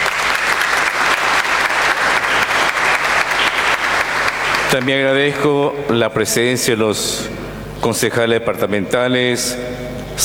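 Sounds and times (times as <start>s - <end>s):
applause: 0.0s - 5.3s
speech: 4.7s - 10.2s.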